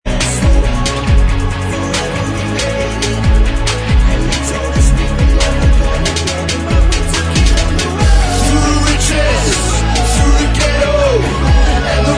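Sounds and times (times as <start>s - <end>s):
backing vocals: 0.1s - 12.1s.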